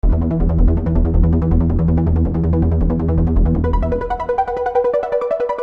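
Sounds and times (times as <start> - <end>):
arpeggio: 0.0 - 5.5.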